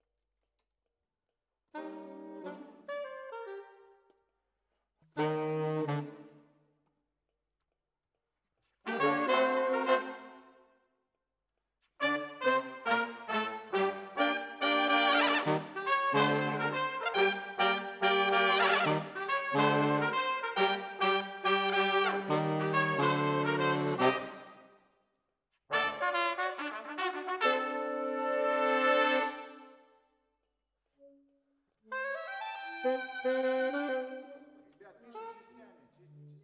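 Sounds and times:
saxophone: 0:01.7 - 0:04.0, 0:05.1 - 0:06.4, 0:08.8 - 0:10.4, 0:12.0 - 0:24.6, 0:25.7 - 0:29.8, 0:31.8 - 0:35.7.

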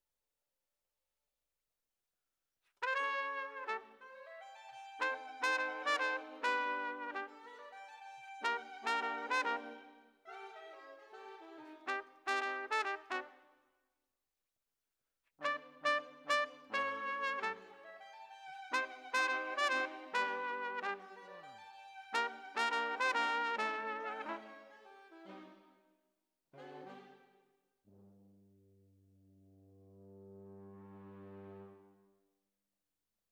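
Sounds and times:
trumpet: 0:02.8 - 0:13.5, 0:15.4 - 0:25.6, 0:26.6 - 0:27.3, 0:29.9 - 0:32.1.

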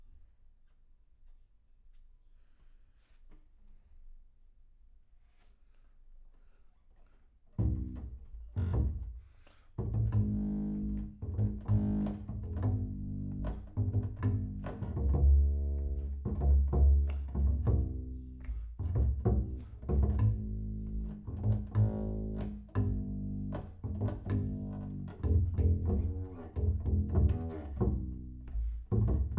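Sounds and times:
bass sound: 0:09.8 - 0:29.3.

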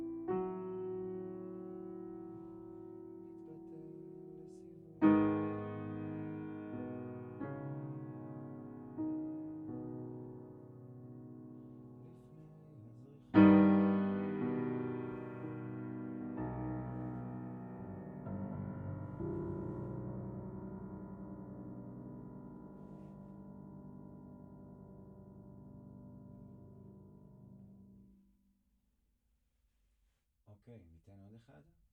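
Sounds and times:
low piano notes: 0:00.0 - 0:28.2.

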